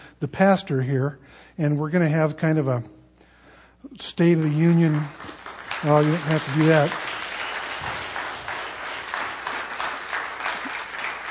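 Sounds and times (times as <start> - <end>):
speech: 0.2 - 3.0, 3.8 - 7.1
audience applauding: 4.3 - 11.2.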